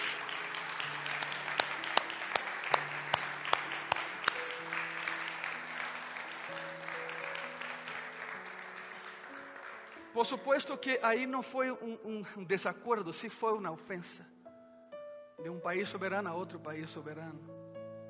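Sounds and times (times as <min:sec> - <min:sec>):
audience applause: 0:00.0 - 0:10.5
speech: 0:10.2 - 0:14.3, 0:15.4 - 0:17.6.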